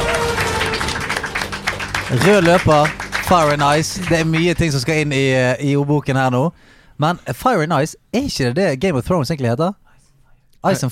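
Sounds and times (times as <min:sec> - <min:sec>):
small group applause: 0:00.0 - 0:05.2
speech: 0:02.1 - 0:09.8, 0:10.6 - 0:10.9.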